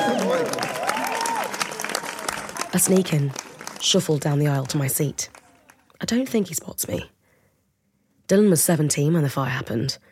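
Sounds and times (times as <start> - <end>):
audience clapping: 0.0 - 6.0
speech: 2.7 - 5.4, 6.0 - 7.2, 8.3 - 10.1.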